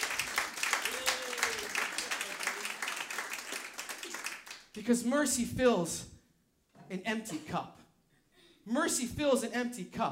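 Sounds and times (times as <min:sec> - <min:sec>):
audience applause: 0:00.0 - 0:04.8
speech: 0:04.8 - 0:06.1, 0:06.9 - 0:07.8, 0:08.7 - 0:10.1.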